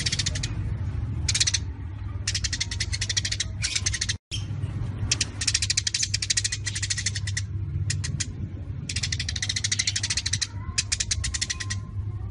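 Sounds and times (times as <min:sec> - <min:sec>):
Eurasian tree sparrows chattering: 0:00.0 - 0:12.2
low hum: 0:00.0 - 0:12.2.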